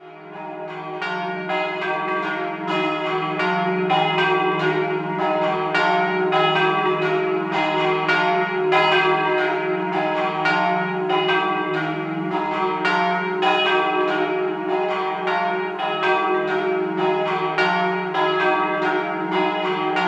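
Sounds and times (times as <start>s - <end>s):
double bells ringing: 0.0s - 20.0s.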